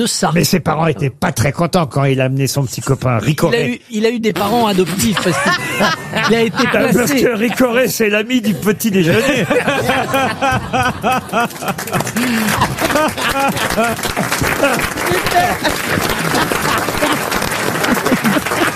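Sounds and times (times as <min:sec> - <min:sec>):
speech: 0:00.0 - 0:17.3
laughter: 0:04.4 - 0:18.7
audience applause: 0:09.4 - 0:18.7.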